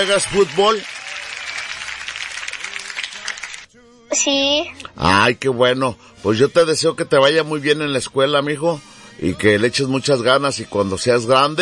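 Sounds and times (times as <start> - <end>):
speech: 0.0 - 0.9, 4.1 - 11.5
applause: 0.0 - 3.7.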